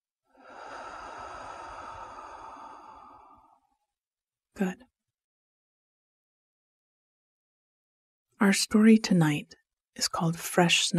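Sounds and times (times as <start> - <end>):
soft breath exhaled as a sigh during a relaxation exercise: 0.3 - 3.8
speech: 4.6 - 4.9, 8.4 - 10.9.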